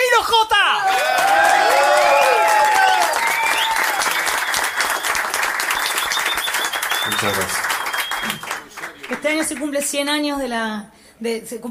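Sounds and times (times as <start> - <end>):
loud audience applause: 0.8 - 10.0
speech: 9.4 - 11.6.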